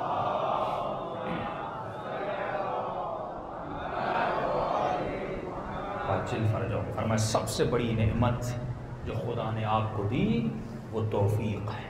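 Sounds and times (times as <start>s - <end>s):
congregation reciting salawat in unison: 0.0s - 7.0s
speech: 6.2s - 11.8s.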